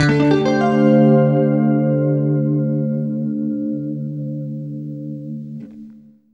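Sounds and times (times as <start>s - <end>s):
clean electric guitar through DM9 pedal: 0.0s - 6.3s.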